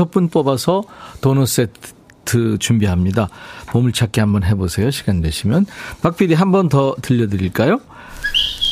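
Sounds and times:
speech: 0:00.0 - 0:08.2
bird laughing call: 0:08.2 - 0:08.7.

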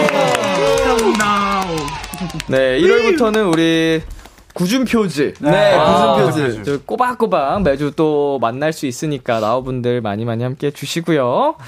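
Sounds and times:
cheering: 0:00.0 - 0:03.6, 0:05.4 - 0:06.6
applause: 0:00.0 - 0:04.4
speech: 0:02.4 - 0:11.6.

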